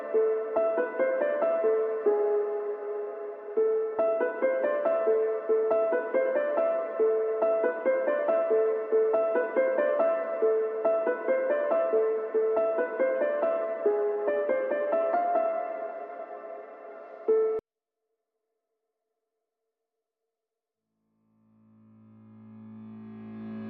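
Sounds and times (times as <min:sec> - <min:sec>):
subtle pianos: 0:00.0 - 0:17.6.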